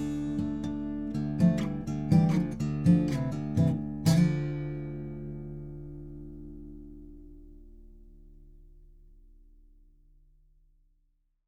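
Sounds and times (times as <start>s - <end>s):
Fame Pro Series SD-100 guitar picked at the 12th fret: 0.0s - 8.3s.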